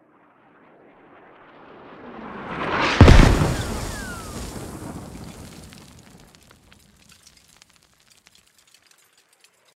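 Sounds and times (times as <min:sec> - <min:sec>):
mortar impact at 50m: 0:03.0 - 0:09.0.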